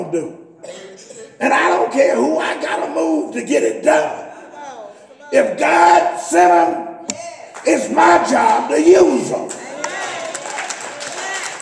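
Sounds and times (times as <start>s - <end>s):
speech: 0.0s - 0.8s, 1.4s - 4.2s, 5.3s - 9.6s
audience clapping: 7.5s - 8.6s, 9.4s - 11.6s.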